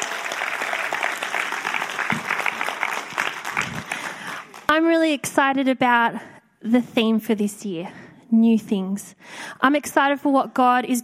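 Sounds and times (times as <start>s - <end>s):
audience round of applause: 0.0s - 4.7s
speech: 4.8s - 11.0s.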